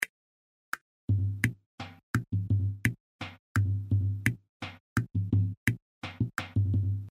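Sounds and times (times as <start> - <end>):
music loop: 1.1 - 7.0.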